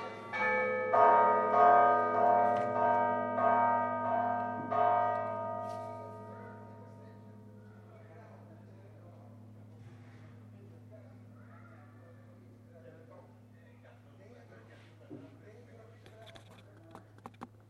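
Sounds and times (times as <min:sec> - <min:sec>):
bells ringing: 0:00.0 - 0:12.7.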